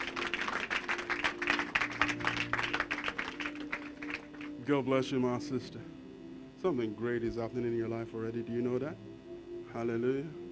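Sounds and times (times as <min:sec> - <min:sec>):
audience applause: 0:00.0 - 0:04.6
faint low sustained tone: 0:00.0 - 0:10.5
speech: 0:04.7 - 0:06.0, 0:06.6 - 0:09.1, 0:09.7 - 0:10.4.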